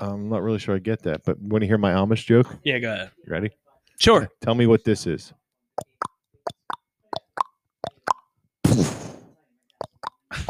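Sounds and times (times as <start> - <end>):
speech: 0.0 - 5.9
mouth imitating horse manure dropping, wet sputtering plop: 5.8 - 8.3, 9.8 - 10.4
person imitating trotting horse with tongue clicks: 5.8 - 8.3, 9.8 - 10.4.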